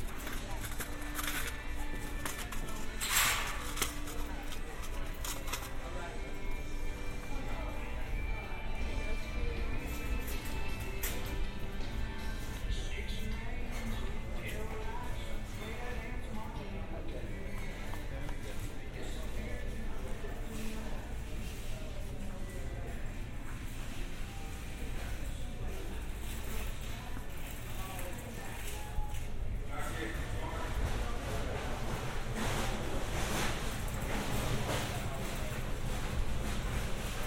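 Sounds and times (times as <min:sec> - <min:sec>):
clicks, knocks and rustles of handled goods: 0:00.0 - 0:08.2, 0:09.6 - 0:37.2
country music: 0:00.0 - 0:22.1
shoppers talking at a hardware store: 0:00.0 - 0:37.2
steady hardware store noise: 0:00.0 - 0:37.2.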